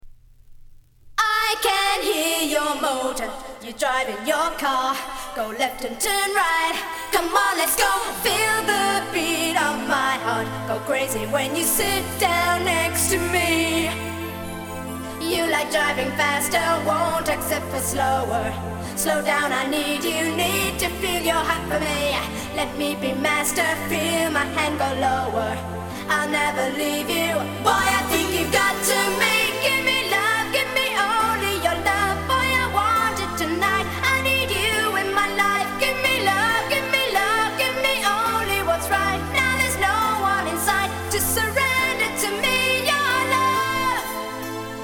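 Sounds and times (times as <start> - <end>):
a cappella singing: 1.2 - 44.7.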